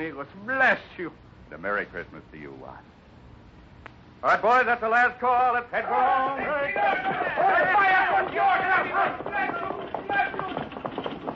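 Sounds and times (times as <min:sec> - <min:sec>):
speech: 0:00.0 - 0:03.0, 0:04.2 - 0:09.9
horse-drawn buckboard wagon hooves clip-clopping: 0:05.8 - 0:11.3.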